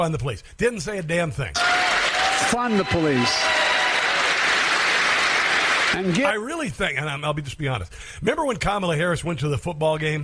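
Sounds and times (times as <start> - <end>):
speech: 0.0 - 3.8, 6.0 - 10.2
rally crowd applause in gymnasium: 1.6 - 6.3.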